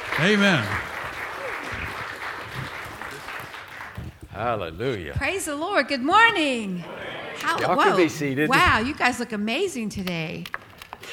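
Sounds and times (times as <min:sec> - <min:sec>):
church congregation applauding: 0:00.0 - 0:04.7
speech: 0:00.2 - 0:00.9, 0:04.4 - 0:11.1.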